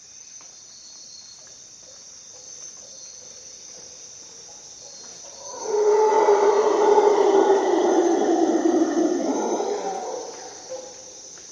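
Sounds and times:
high insect hum: 0.0s - 11.5s
howler monkey roar: 5.4s - 11.0s.

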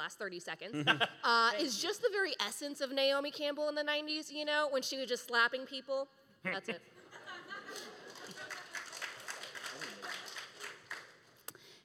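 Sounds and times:
speech: 0.0s - 7.9s
laughter: 0.7s - 1.4s, 7.0s - 10.3s
audience applause: 7.7s - 11.4s.

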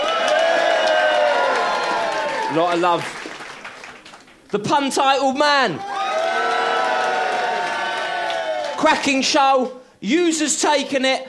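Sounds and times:
crowd screaming and cheering: 0.0s - 2.8s, 5.8s - 8.8s
speech: 2.5s - 3.2s, 4.5s - 5.9s, 8.8s - 11.2s.

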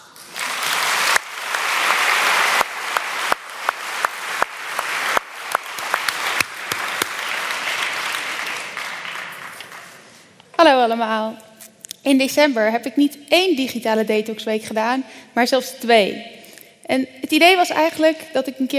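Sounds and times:
applause: 0.0s - 10.2s
speech: 10.6s - 18.7s.

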